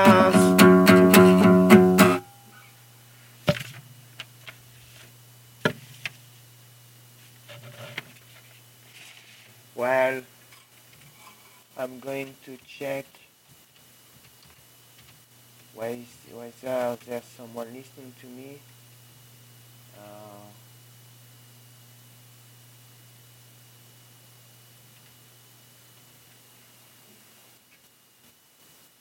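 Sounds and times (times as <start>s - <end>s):
live acoustic music: 0.0s - 2.3s.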